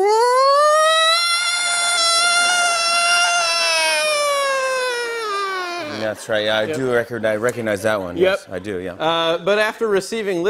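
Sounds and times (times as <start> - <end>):
voice imitating a fire truck siren: 0.0 - 5.9
speech: 6.2 - 10.4.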